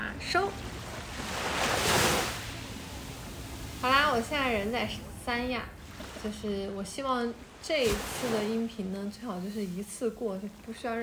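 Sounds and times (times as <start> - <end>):
ocean waves on the shore in Sanya: 0.0 - 11.0
speech: 0.3 - 0.8, 4.2 - 11.0.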